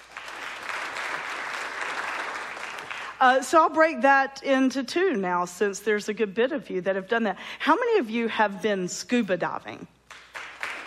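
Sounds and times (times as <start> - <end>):
audience clapping: 0.0 - 3.2, 10.1 - 10.8
speech: 3.2 - 10.0.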